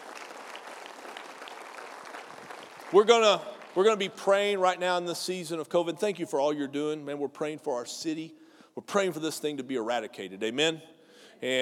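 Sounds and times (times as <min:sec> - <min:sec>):
audience applause: 0:00.0 - 0:04.1
speech: 0:02.9 - 0:11.6.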